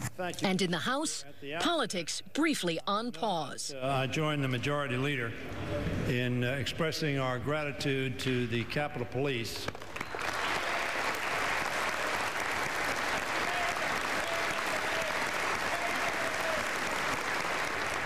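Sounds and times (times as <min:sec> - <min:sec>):
speech: 0:00.2 - 0:10.0
sustained applause in the House chamber: 0:09.8 - 0:18.0.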